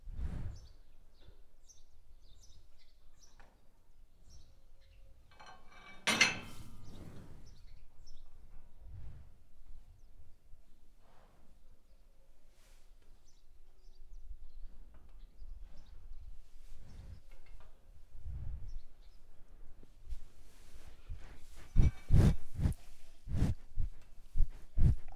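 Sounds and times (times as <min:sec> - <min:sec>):
cow breathing: 0:00.0 - 0:00.8, 0:06.5 - 0:09.8, 0:15.6 - 0:25.1.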